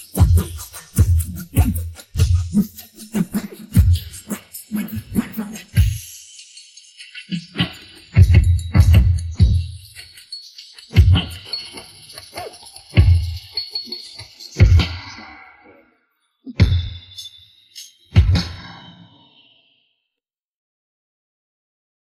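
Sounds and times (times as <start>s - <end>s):
theme song drums: 0.0s - 4.3s, 8.2s - 9.6s, 11.0s - 11.4s, 13.0s - 13.4s, 14.6s - 15.0s, 16.6s - 16.9s, 18.2s - 18.6s.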